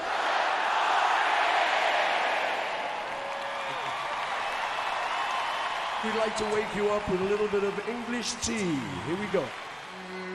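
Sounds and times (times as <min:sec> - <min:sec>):
live audience shouting a greeting to astronauts: 0:00.0 - 0:10.3
speech: 0:06.0 - 0:09.6.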